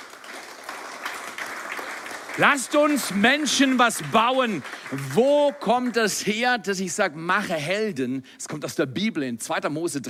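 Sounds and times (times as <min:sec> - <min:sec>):
audience applause: 0:00.0 - 0:06.6
speech: 0:02.4 - 0:10.0.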